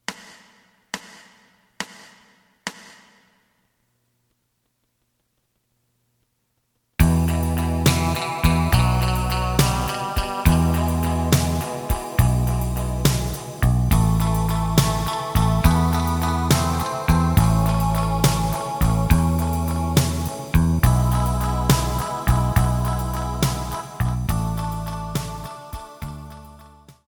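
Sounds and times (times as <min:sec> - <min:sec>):
lead melody: 0:07.0 - 0:26.9.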